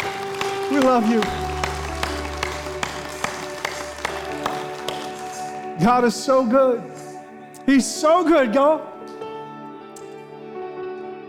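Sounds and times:
audience clapping in unison: 0.0 - 7.1
sustained held musical chord: 0.0 - 11.2
speech: 0.7 - 1.5, 5.8 - 6.9, 7.7 - 8.9.

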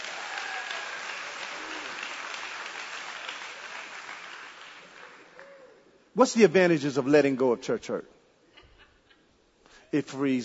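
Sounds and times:
audience applause: 0.0 - 5.7
speech: 6.2 - 8.2, 9.9 - 10.4.

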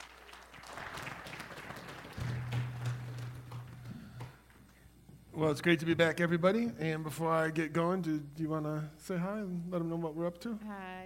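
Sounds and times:
audience applause welcoming a family to the stage: 0.0 - 4.5
low steady hum: 0.8 - 11.0
speech: 5.4 - 11.0.

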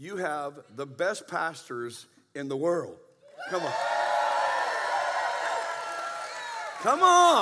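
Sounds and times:
speech: 0.0 - 4.0, 6.8 - 7.4
audience cheering: 3.4 - 7.4.

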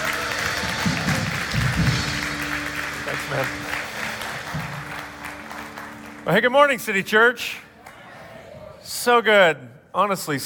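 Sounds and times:
City Church congregation applause welcoming a pastor on a Sunday morning: 0.0 - 8.4
speech: 3.3 - 3.8, 6.3 - 7.6, 9.0 - 10.4.

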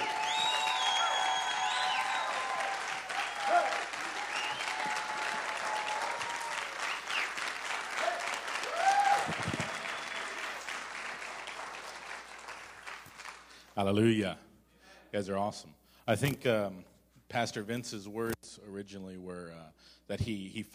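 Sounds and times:
audience applause: 0.0 - 13.6
speech: 13.8 - 14.4, 15.1 - 20.7.

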